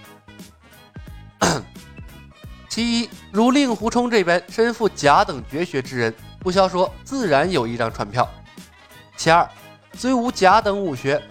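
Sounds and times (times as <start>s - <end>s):
soft voiced sounds: 1.4s - 1.7s
man coughing lightly to clear his throat: 1.4s - 1.8s
speech: 2.8s - 8.4s, 9.2s - 11.2s.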